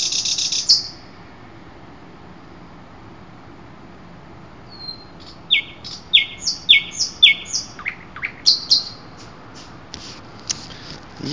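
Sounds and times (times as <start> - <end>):
common nightingale song: 0.0 - 1.3, 4.6 - 9.8.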